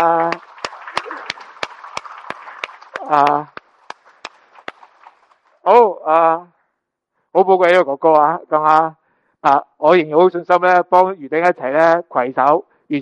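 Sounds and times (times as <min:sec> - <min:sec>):
sparse clapping at a church gathering: 0:00.0 - 0:05.4
speech: 0:03.1 - 0:03.6, 0:06.1 - 0:06.5, 0:07.4 - 0:12.9.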